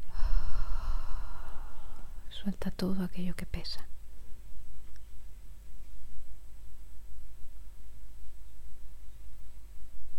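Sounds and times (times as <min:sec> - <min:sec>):
long exhaled breath during a guided breathing meditation: 0:00.0 - 0:02.2
speech: 0:02.4 - 0:03.9.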